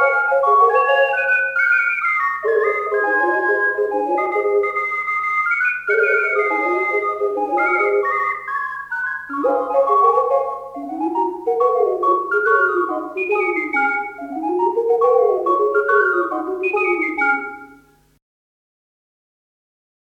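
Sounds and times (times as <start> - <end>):
veneziana ocarina: 0.0 - 18.0.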